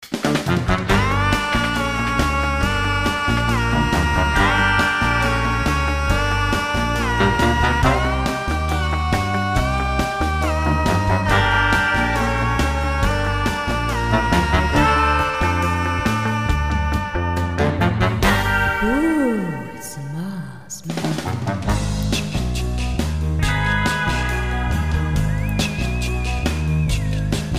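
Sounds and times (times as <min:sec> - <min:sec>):
comedy rock music: 0:00.0 - 0:27.5.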